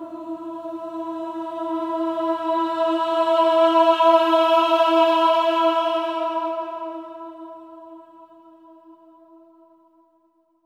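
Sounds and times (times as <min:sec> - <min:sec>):
choir singing swelling ahs on E4: 0:00.0 - 0:08.1.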